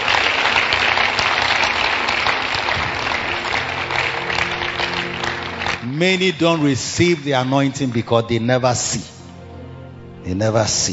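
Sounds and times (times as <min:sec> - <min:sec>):
audience clapping: 0:00.0 - 0:08.4
speech: 0:06.0 - 0:09.2, 0:10.3 - 0:10.9.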